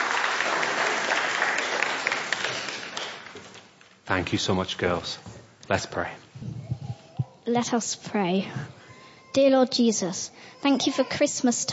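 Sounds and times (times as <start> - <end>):
crowd applause: 0.0 - 3.6
speech: 4.1 - 6.5, 7.5 - 11.7.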